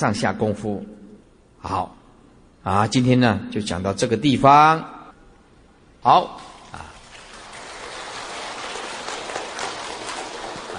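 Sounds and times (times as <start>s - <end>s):
speech: 0.0s - 1.0s, 1.6s - 2.0s, 2.6s - 5.0s, 6.0s - 6.8s
audience applause: 6.9s - 10.7s.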